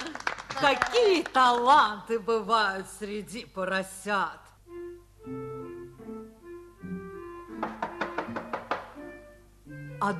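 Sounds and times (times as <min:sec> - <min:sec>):
speech: 0:00.6 - 0:04.5
knocking on a door: 0:07.5 - 0:09.1.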